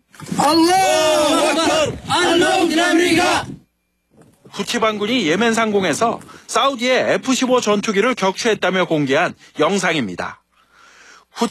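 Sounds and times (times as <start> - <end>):
men cheering and yelling over fighter jet wreckage: 0.4 - 3.6
speech: 0.5 - 1.2, 4.6 - 10.4.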